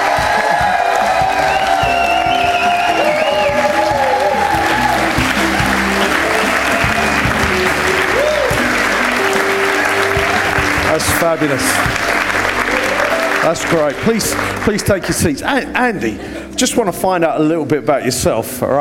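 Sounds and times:
crowd cheering: 0:00.0 - 0:15.2
audience applause as a guest walks onto the stage: 0:00.0 - 0:15.5
speech: 0:11.3 - 0:12.1, 0:13.5 - 0:18.7.

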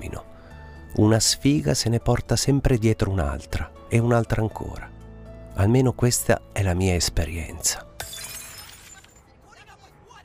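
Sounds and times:
speech: 0:00.9 - 0:04.9, 0:05.6 - 0:08.3
glasses breaking: 0:08.0 - 0:09.4.

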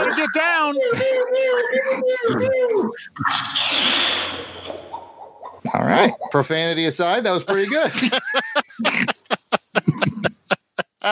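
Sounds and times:
laughter: 0:00.0 - 0:03.3, 0:07.2 - 0:11.1
voices imitating sci-fi laser sounds: 0:00.0 - 0:06.5
speech: 0:00.3 - 0:04.6, 0:05.8 - 0:08.4.

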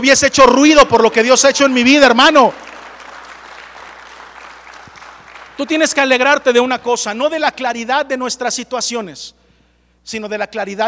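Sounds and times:
speech: 0:00.0 - 0:02.6, 0:05.6 - 0:09.4, 0:10.0 - 0:10.8
large group applauding: 0:01.6 - 0:07.1.

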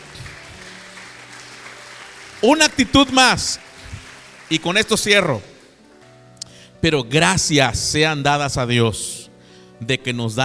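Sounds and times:
audience applause: 0:00.0 - 0:05.8
speech: 0:02.4 - 0:03.6, 0:04.5 - 0:05.5, 0:06.8 - 0:09.2, 0:09.8 - 0:10.4.

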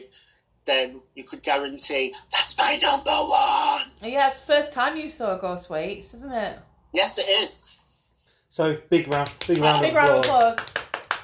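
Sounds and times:
speech: 0:00.7 - 0:07.8, 0:08.5 - 0:10.8
audience hand claps: 0:09.0 - 0:11.2.

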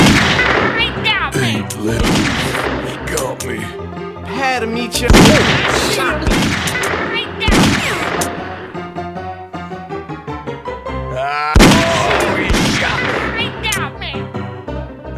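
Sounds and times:
gunshots in the video game Grizzly Gulch: 0:00.0 - 0:01.0, 0:01.9 - 0:03.3, 0:05.1 - 0:08.6, 0:11.6 - 0:13.6
steady game music: 0:00.0 - 0:15.1
speech: 0:01.8 - 0:02.6, 0:03.4 - 0:06.8.

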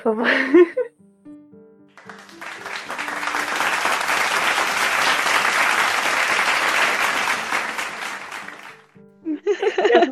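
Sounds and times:
speech: 0:00.0 - 0:00.9
applause sound effect added in editing: 0:02.0 - 0:09.0
laughter: 0:09.3 - 0:10.1.

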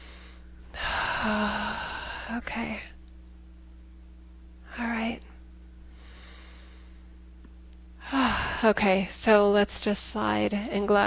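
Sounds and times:
deep breath during a guided breathing exercise: 0:00.0 - 0:02.4, 0:05.9 - 0:07.1, 0:08.0 - 0:08.7
speech: 0:01.2 - 0:01.7, 0:02.3 - 0:03.0, 0:08.6 - 0:11.0.

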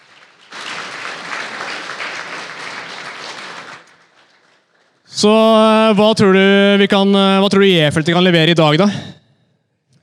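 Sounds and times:
applause: 0:00.0 - 0:05.2
speech: 0:05.2 - 0:09.2.

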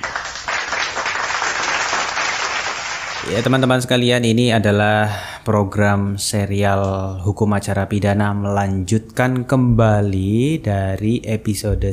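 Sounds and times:
crowd applause: 0:00.0 - 0:03.6
speech: 0:03.3 - 0:11.9.

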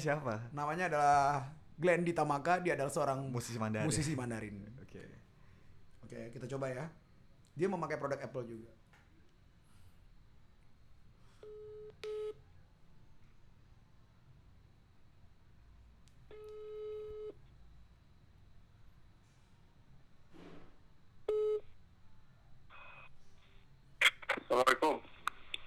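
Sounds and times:
speech: 0:00.0 - 0:05.2, 0:06.1 - 0:07.0, 0:07.6 - 0:08.8
telephone dialing and ringing tones while placing a call: 0:16.3 - 0:17.4, 0:21.3 - 0:21.6
person answering phone: 0:24.0 - 0:25.6.

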